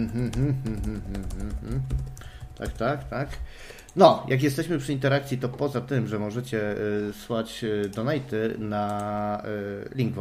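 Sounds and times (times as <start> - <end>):
typing on a computer keyboard: 0.0 - 3.2, 8.8 - 9.2
speech: 0.0 - 10.1.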